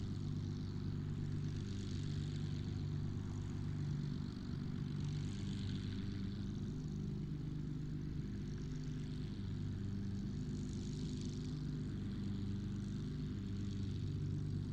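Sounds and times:
distant Supermarine Spitfire Mk XVI aircraft idling: 0.0 - 14.7.

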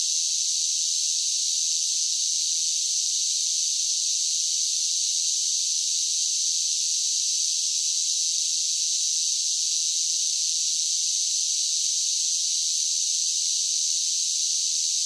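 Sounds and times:
cicadas singing: 0.2 - 6.0, 6.5 - 15.0.

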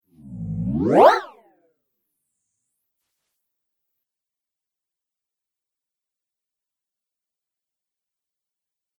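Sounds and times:
jump build-up whoosh: 0.1 - 1.4.

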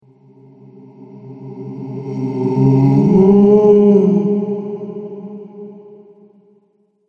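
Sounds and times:
ghost sound: 0.5 - 6.0.

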